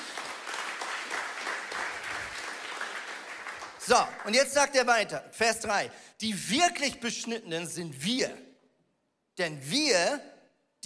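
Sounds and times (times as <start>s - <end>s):
audience applause: 0.0s - 4.4s
speech: 3.9s - 8.4s, 9.4s - 10.8s.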